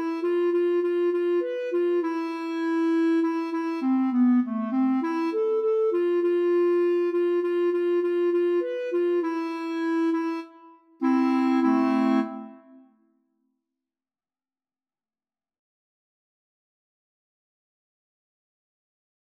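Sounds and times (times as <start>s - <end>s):
polska folk dance tune: 0.0s - 12.8s.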